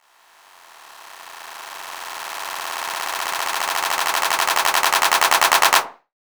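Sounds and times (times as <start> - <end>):
clap sound effect: 2.1 - 6.0.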